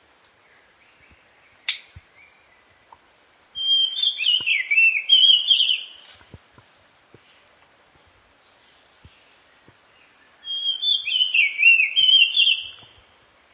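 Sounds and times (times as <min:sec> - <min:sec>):
Elegant sunbird singing twittering phrases: 0:00.4 - 0:02.8, 0:03.6 - 0:06.2, 0:08.5 - 0:13.1.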